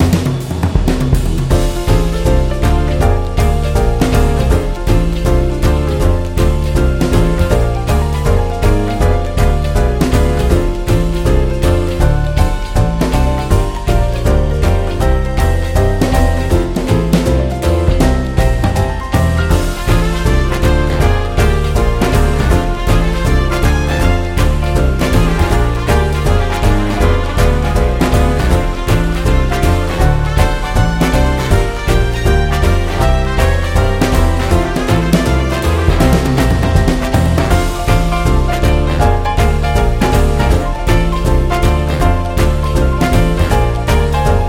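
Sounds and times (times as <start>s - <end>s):
jazz blues music: 0.0s - 44.4s.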